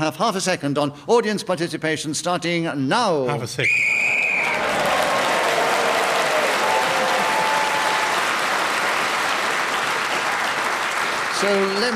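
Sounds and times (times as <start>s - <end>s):
speech: 0.0s - 4.1s, 11.4s - 11.9s
studio audience applause on a game show: 3.9s - 11.9s.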